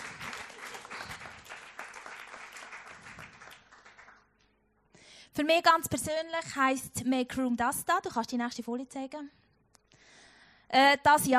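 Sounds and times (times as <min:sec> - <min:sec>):
audience applause: 0:00.0 - 0:04.4
speech: 0:05.4 - 0:09.4, 0:10.7 - 0:11.3.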